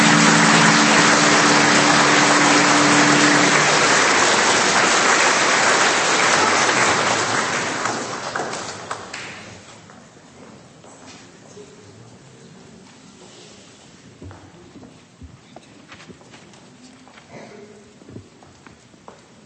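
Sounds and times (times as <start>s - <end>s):
applause: 0.0s - 9.6s.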